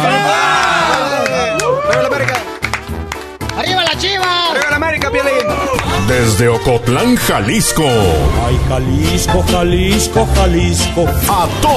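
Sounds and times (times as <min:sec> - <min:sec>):
crowd cheering and whooping: 0:00.0 - 0:02.4, 0:05.2 - 0:06.2
scattered clapping: 0:00.6 - 0:06.4
speech: 0:06.1 - 0:11.7.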